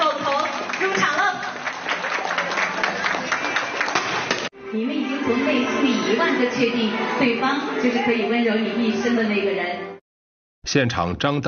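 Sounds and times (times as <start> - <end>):
warm applause at a wedding: 0.0 - 4.5
speech: 4.7 - 9.9, 10.6 - 11.4.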